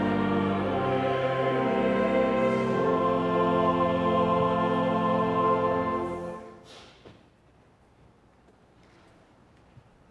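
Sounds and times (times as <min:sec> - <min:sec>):
Anglican chant: 0:00.0 - 0:06.6.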